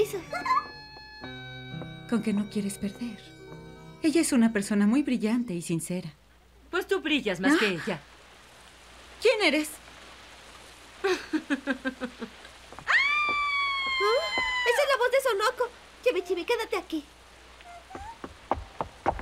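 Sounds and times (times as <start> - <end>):
speech: 0.0 - 0.6, 2.1 - 3.4, 4.0 - 6.2, 6.8 - 8.1, 9.2 - 9.8, 11.5 - 12.4, 15.3 - 17.2
heavy rain falling: 7.4 - 19.2.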